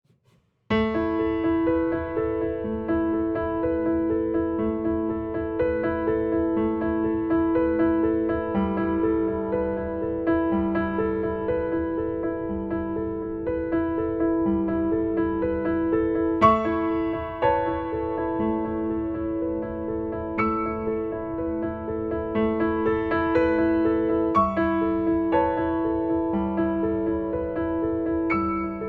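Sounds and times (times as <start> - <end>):
piano: 0.7 - 28.8.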